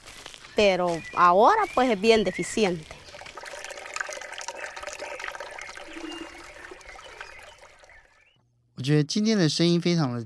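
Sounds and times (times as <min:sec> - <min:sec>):
speech: 0:00.6 - 0:03.0, 0:08.8 - 0:10.2
scooping water: 0:02.4 - 0:08.3.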